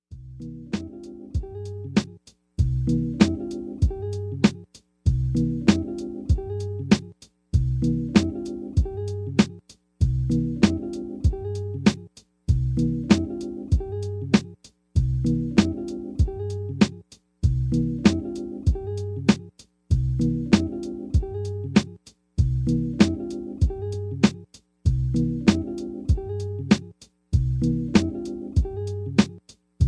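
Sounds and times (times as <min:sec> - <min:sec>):
MPC drum machine beat: 0:00.1 - 0:29.8.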